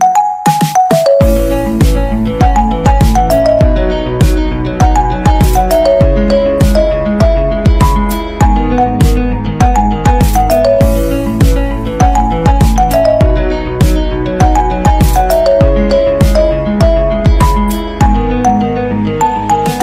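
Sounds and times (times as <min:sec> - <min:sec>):
iPhone music ringtone: 0:00.0 - 0:19.8.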